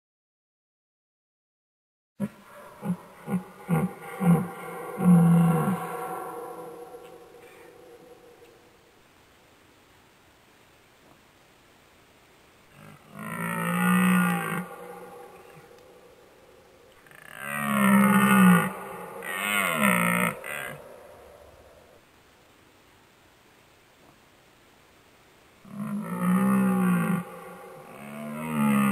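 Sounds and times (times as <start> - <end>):
fallow deer groaning: 2.2 - 8.8, 12.7 - 16.3, 17.0 - 22.0, 25.7 - 28.8.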